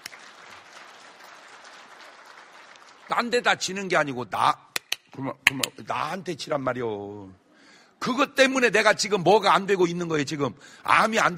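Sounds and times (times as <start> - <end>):
audience applause: 0.0 - 3.5
speech: 3.1 - 7.4, 8.0 - 11.3.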